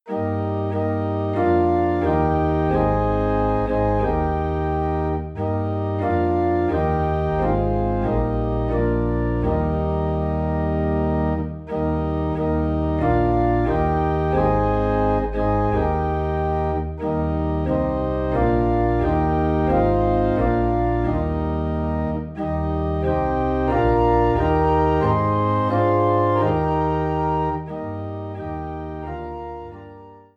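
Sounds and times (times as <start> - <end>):
organ in E flat: 0.1 - 30.3.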